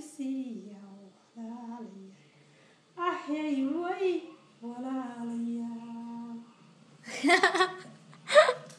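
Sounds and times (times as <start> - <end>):
mother singing in Somali: 0.0 - 2.2, 3.0 - 6.5.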